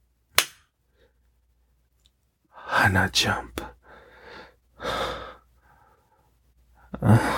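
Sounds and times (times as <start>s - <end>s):
hand slapping someone's buttocks: 0.3s - 0.7s
speech: 2.8s - 3.7s.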